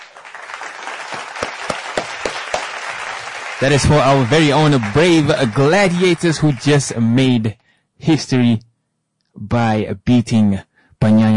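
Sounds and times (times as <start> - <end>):
applause: 0.0 - 7.1
speech: 3.6 - 8.7, 9.4 - 11.3.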